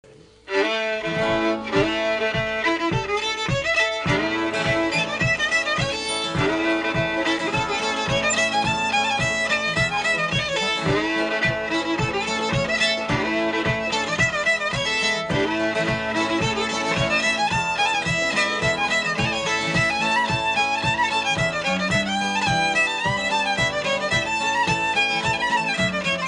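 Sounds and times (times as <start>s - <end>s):
guitar: 0.0s - 26.2s.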